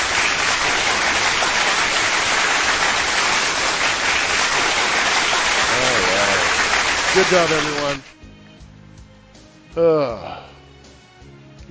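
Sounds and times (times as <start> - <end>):
round of applause: 0.0 - 8.1
speech: 7.2 - 8.1, 9.8 - 10.4.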